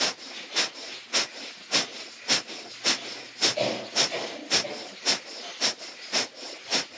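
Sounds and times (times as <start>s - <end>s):
forceful yogic exhalations through the throat: 0.0s - 6.9s
quieter airy breathing: 0.0s - 6.9s.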